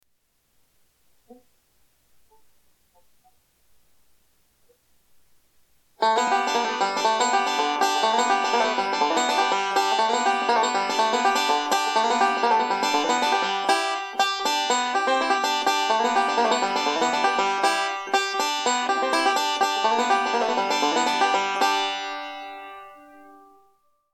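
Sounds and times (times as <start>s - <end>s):
banjo: 6.0s - 23.6s.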